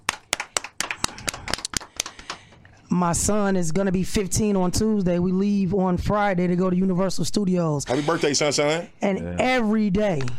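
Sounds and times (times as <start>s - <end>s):
audience applause: 0.0s - 2.4s
speech: 2.9s - 10.3s.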